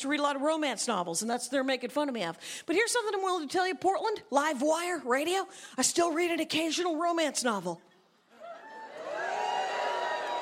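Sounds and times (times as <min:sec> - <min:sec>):
speech: 0:00.0 - 0:07.9
audience booing: 0:08.6 - 0:10.3.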